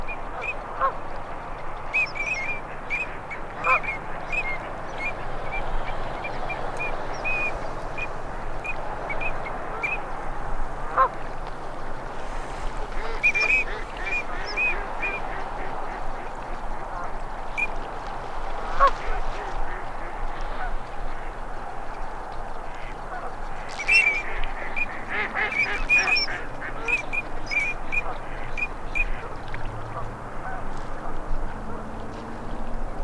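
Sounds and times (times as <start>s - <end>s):
ducks quacking: 0.3s - 11.4s, 12.0s - 32.7s.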